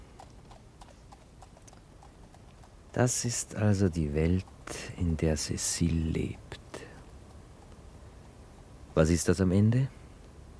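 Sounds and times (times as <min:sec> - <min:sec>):
hooves of a horse pulling a horse-drawn tram: 0:00.0 - 0:05.7
low hiss: 0:00.0 - 0:10.5
speech: 0:02.9 - 0:06.5, 0:09.0 - 0:10.0.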